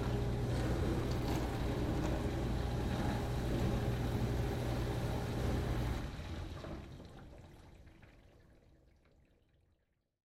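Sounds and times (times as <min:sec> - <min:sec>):
dishwasher running rinse cycle: 0:00.0 - 0:09.9.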